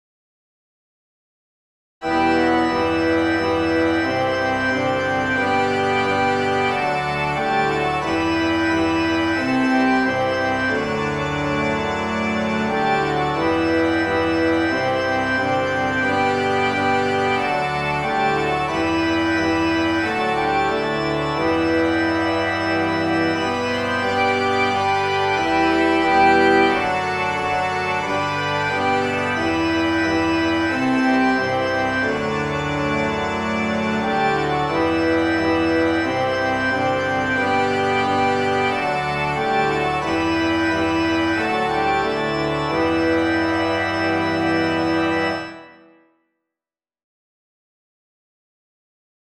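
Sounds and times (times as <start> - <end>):
organ: 2.0 - 46.0.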